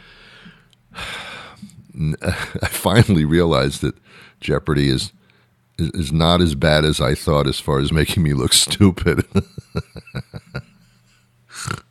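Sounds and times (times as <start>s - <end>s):
speech: 2.0s - 5.2s, 5.8s - 10.3s
person laughing: 2.2s - 3.1s, 9.0s - 10.9s, 11.5s - 11.9s.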